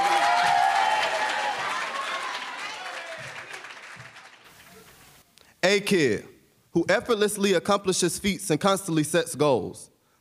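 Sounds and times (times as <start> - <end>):
crowd applauding: 0.0 - 5.2
speech: 5.7 - 10.2.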